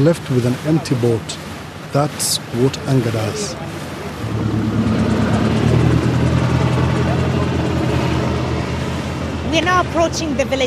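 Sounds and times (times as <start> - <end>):
speech: 0.0 - 4.6, 9.5 - 10.6
helicopter hovering overhead: 3.3 - 10.6.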